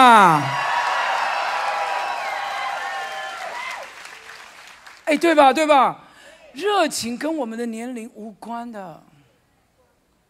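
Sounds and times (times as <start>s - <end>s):
audience cheering: 0.0s - 5.0s
speech: 5.1s - 6.0s, 6.6s - 9.1s.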